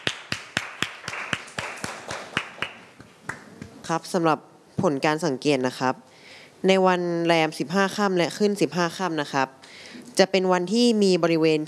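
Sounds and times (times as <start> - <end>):
students clapping in unison: 0.0 - 3.7
speech: 3.9 - 11.6.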